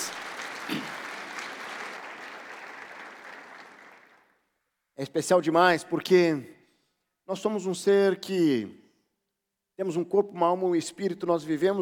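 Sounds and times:
audience applause: 0:00.0 - 0:04.3
speech: 0:05.0 - 0:06.6, 0:07.3 - 0:08.8, 0:09.8 - 0:11.8.

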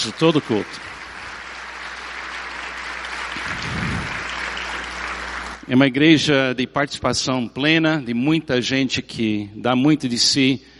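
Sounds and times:
speech: 0:00.0 - 0:00.9, 0:05.7 - 0:10.7
audience applauding: 0:00.0 - 0:05.7.

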